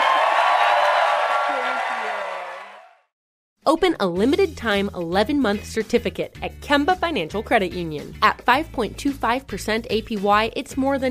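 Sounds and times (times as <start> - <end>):
audience applause: 0.0 - 3.0
speech: 3.7 - 11.0.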